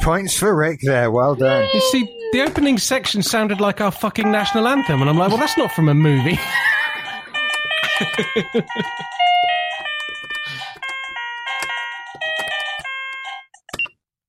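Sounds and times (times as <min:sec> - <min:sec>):
speech: 0:00.0 - 0:06.7, 0:08.0 - 0:09.2
laughter: 0:01.3 - 0:09.6
electronic keyboard stop button chime: 0:06.8 - 0:13.5.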